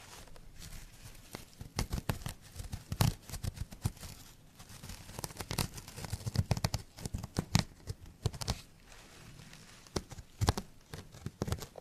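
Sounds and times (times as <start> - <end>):
sharp dry scratching scrapes: 0.0 - 11.7.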